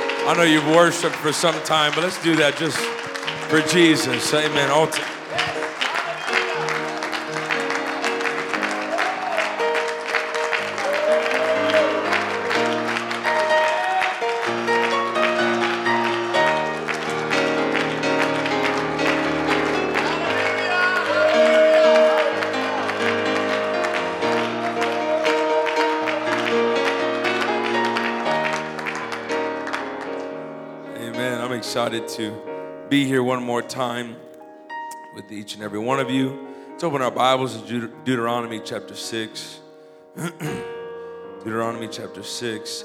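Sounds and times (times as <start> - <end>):
audience clapping: 0.0 - 30.9
keyboard or organ music playing chords: 0.0 - 42.8
speech: 0.2 - 5.2, 31.9 - 34.2, 35.2 - 39.6, 40.2 - 40.7, 41.4 - 42.8
scattered whoops: 10.7 - 12.6, 13.4 - 14.3, 20.0 - 22.8.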